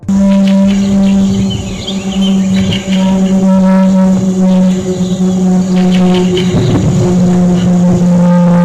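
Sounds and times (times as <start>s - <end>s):
Republic XF-84H Thunder Screech supersonic propeller aircraft engine roar: 0.0s - 8.6s.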